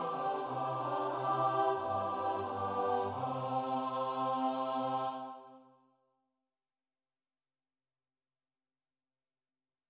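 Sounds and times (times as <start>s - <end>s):
SATB choir singing: 0.0s - 5.8s.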